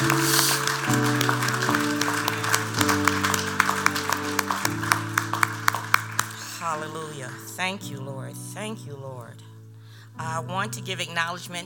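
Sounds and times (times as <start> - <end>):
audience clapping hands in praise: 0.0 - 7.8
sustained organ chords: 0.0 - 8.9
speech: 7.7 - 9.5, 10.2 - 11.6.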